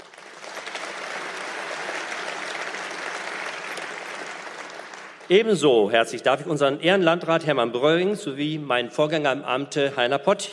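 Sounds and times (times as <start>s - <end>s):
audience applause: 0.0s - 5.3s
speech: 5.3s - 10.5s.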